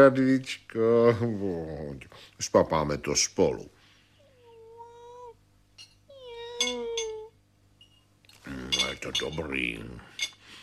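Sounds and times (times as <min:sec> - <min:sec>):
speech: 0:00.0 - 0:03.8, 0:08.5 - 0:10.3
cat meowing: 0:04.3 - 0:05.4, 0:06.1 - 0:07.3.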